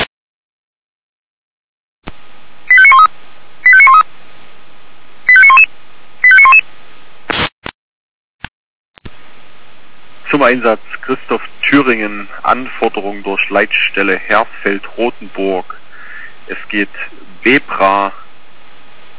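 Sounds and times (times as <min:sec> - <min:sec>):
radio pager alerting tones: 0:02.7 - 0:03.1, 0:03.7 - 0:04.0, 0:05.3 - 0:06.6
short crackles of static: 0:07.3 - 0:07.5
faint radio hiss: 0:10.2 - 0:18.3
speech: 0:10.4 - 0:15.8, 0:16.5 - 0:18.2.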